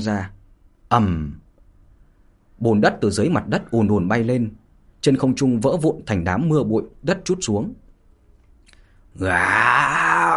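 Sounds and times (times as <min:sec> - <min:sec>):
speech: 0:00.0 - 0:01.4, 0:02.6 - 0:07.8, 0:09.2 - 0:10.3
human voice imitating an angry beast roar: 0:09.2 - 0:10.3.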